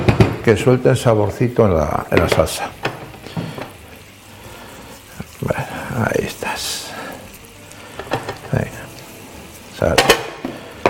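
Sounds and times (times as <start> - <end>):
food frying in a pan: 0.0 - 10.8
speech: 0.4 - 2.8
utensil scraping and clattering against the pan while stirring: 2.1 - 10.8.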